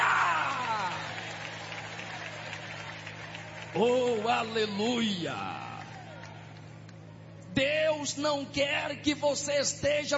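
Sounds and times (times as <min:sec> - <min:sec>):
crowd clapping: 0:00.0 - 0:07.1
speech: 0:03.7 - 0:05.7, 0:07.6 - 0:10.1.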